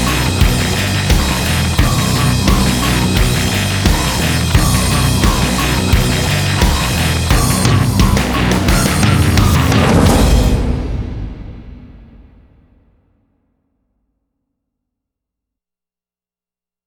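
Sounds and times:
drums: 0.0 - 13.0.

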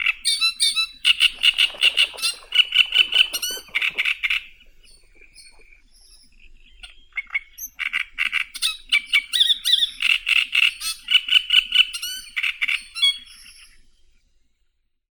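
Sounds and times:
great reed warbler Acrocephalus arundinaceus: 0.0 - 14.2.

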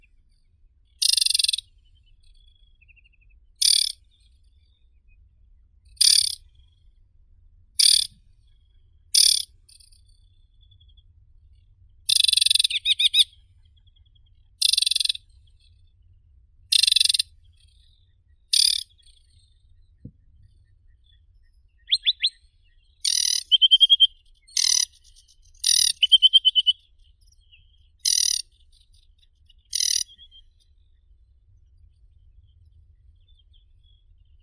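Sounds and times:
Acrocephalus paludicola aquatic warbler singing: 1.0 - 2.2, 3.6 - 4.0, 6.0 - 6.4, 7.8 - 8.2, 9.2 - 9.9, 12.1 - 13.3, 14.6 - 15.2, 16.7 - 17.6, 18.5 - 19.2, 21.8 - 28.9, 29.5 - 30.6.

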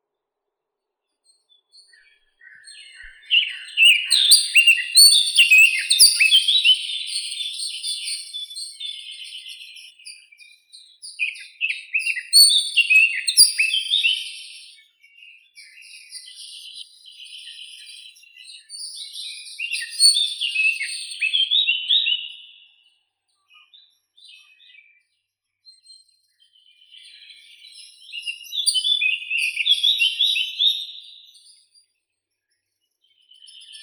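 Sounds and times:
Sylvia atricapilla blackcap singing: 1.8 - 22.6, 26.9 - 31.6.

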